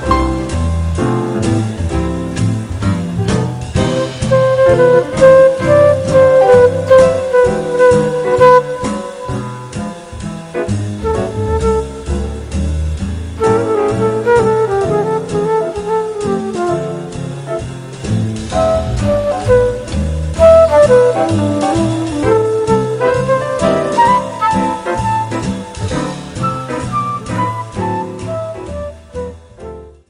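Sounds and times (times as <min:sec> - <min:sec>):
live band playing: 0:00.0 - 0:30.0
saxophone: 0:03.8 - 0:09.9, 0:11.0 - 0:12.5, 0:13.4 - 0:17.7, 0:18.5 - 0:29.9.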